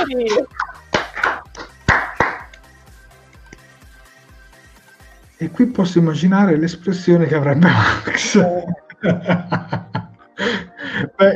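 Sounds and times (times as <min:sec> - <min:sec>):
speech: 0:00.0 - 0:00.6, 0:05.4 - 0:09.7, 0:11.2 - 0:11.3
hosts clapping hands in applause: 0:00.0 - 0:03.7
laughter: 0:07.6 - 0:10.3.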